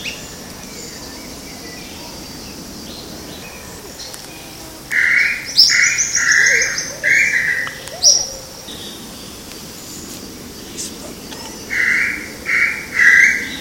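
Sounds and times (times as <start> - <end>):
Crypturellus tataupa calling: 3.8 - 9.4, 10.6 - 13.4.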